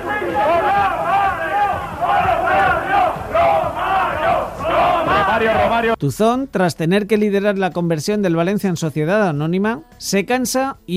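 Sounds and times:
Valencia football fans chanting against club president: 0.0s - 6.0s
speech: 5.4s - 10.9s.

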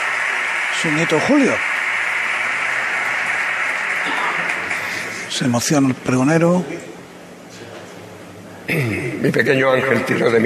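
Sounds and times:
audience ovation: 0.0s - 5.3s
speech: 0.8s - 1.7s, 5.3s - 6.9s, 8.7s - 10.4s.

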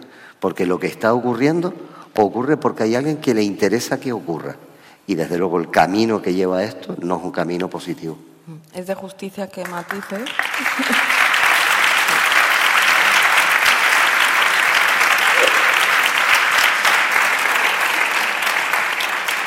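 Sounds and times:
speech: 0.4s - 11.1s
audience applause: 10.1s - 19.4s.

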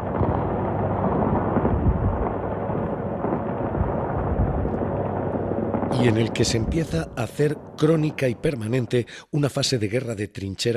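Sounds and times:
bombs exploding in a war zone: 0.0s - 8.8s
speech: 6.0s - 10.7s.

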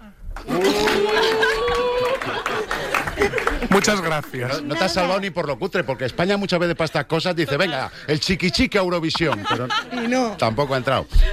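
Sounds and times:
person whooping: 0.4s - 2.4s
audience cheering: 0.4s - 3.9s
audience applause: 0.4s - 4.5s
laughter: 0.4s - 4.7s, 7.2s - 11.3s
speech: 3.7s - 11.3s.

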